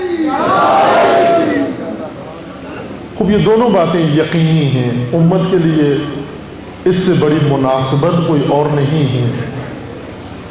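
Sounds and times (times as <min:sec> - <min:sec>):
crowd at a religious gathering shouting a slogan: 0:00.0 - 0:01.8
speech: 0:03.2 - 0:06.2, 0:06.8 - 0:09.6.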